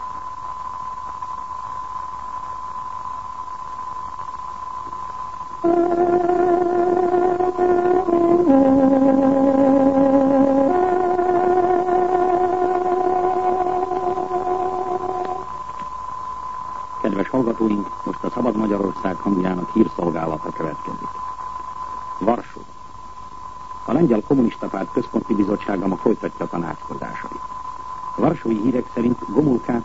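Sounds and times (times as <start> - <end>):
radio hiss: 0.0 - 29.8
steady high tone: 2.8 - 29.8
speech: 5.6 - 6.2
time signal played on a tárogató: 5.6 - 15.5.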